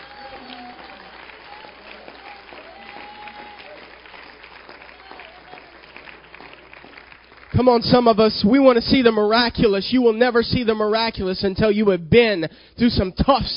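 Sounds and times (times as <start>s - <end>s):
audience clapping: 0.0s - 8.2s
speech: 7.6s - 13.5s.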